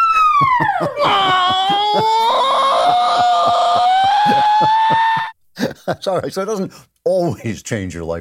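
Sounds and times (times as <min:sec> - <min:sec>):
laughter: 0:00.3 - 0:06.3
loud piercing scream in a short musical jingle: 0:00.9 - 0:05.4
speech: 0:05.9 - 0:08.1.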